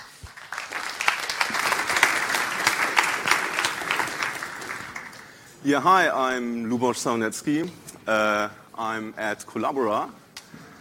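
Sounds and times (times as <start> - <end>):
round of applause: 0.0 - 5.4
speech: 5.6 - 10.2.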